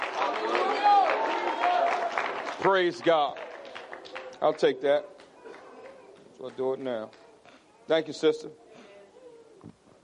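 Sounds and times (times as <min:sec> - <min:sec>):
audience clapping hands: 0:00.0 - 0:07.3
speech: 0:02.6 - 0:03.4, 0:04.4 - 0:05.1, 0:06.4 - 0:07.2, 0:07.9 - 0:08.6.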